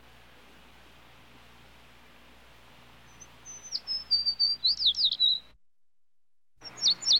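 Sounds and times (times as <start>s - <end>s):
sparrow singing: 3.0s - 5.6s, 6.6s - 7.1s.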